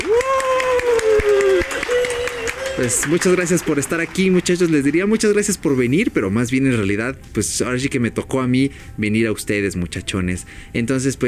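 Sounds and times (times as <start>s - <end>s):
audience applause: 0.0s - 5.6s
speech: 2.8s - 11.2s.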